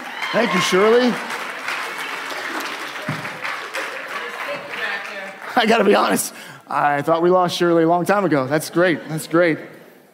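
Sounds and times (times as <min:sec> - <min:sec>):
audience applause: 0:00.0 - 0:06.4
speech: 0:00.3 - 0:01.3, 0:05.6 - 0:09.8.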